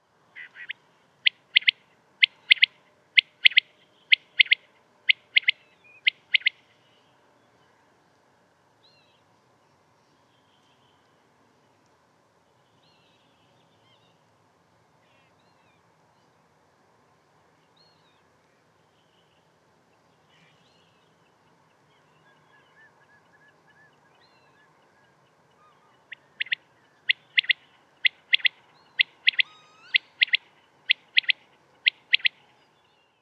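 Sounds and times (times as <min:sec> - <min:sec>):
common quail Coturnix coturnix calling: 0:00.4 - 0:06.8, 0:21.9 - 0:32.5.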